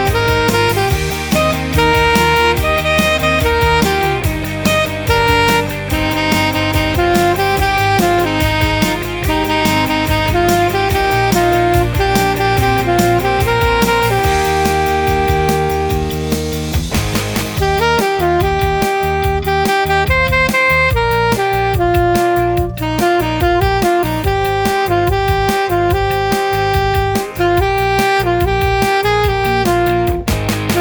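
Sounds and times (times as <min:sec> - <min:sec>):
alto saxophone: 0:00.0 - 0:30.7.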